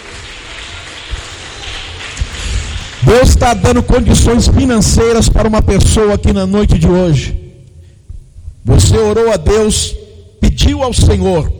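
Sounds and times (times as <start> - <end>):
people clapping: 0.0 - 4.4
speech: 3.0 - 7.4, 8.7 - 11.5.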